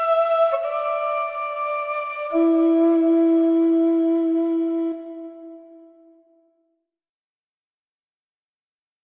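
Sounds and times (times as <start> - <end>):
flute music: 0.0 - 6.6.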